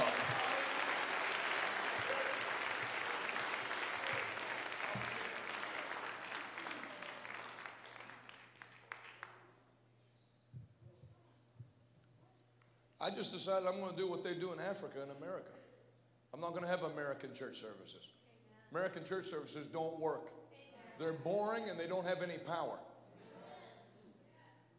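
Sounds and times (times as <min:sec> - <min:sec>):
audience clapping: 0:00.0 - 0:09.6
speech: 0:13.0 - 0:15.6, 0:16.4 - 0:20.4, 0:21.0 - 0:22.9.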